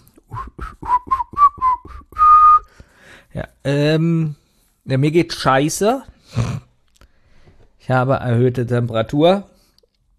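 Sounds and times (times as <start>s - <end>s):
person whistling a cheerful song: 0.2s - 2.8s
speech: 3.6s - 6.4s, 7.9s - 9.5s.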